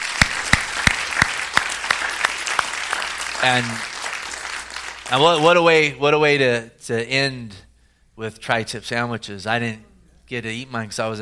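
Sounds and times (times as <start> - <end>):
audience hand clapping: 0.0 - 5.9
speech: 3.4 - 3.9, 5.1 - 7.6, 8.2 - 11.1.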